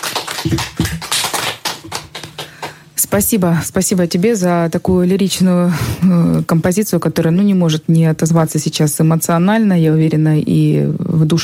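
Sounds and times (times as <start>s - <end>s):
scattered applause in a radio studio: 0.0s - 2.9s
speech: 0.4s - 1.0s, 3.1s - 11.4s.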